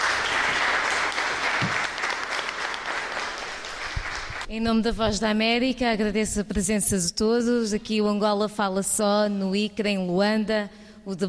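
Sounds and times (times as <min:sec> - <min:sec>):
crowd applause: 0:00.0 - 0:04.5
speech: 0:04.5 - 0:11.2.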